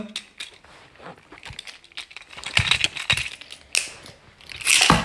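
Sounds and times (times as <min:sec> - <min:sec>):
speech: 0:00.0 - 0:00.3
light clicks and rattles: 0:01.3 - 0:04.9.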